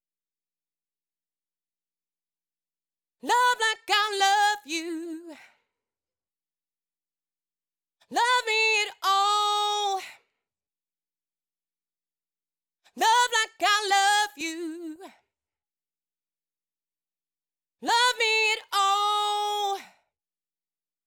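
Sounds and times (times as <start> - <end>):
female vocal chorus response melody: 3.2 - 5.4, 8.1 - 10.1, 13.0 - 15.1, 17.8 - 19.9.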